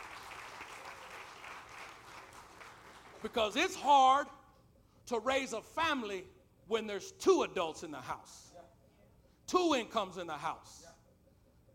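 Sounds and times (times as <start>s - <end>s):
audience applause: 0.0s - 3.3s
speech: 3.2s - 4.4s, 5.1s - 8.5s, 9.5s - 10.9s.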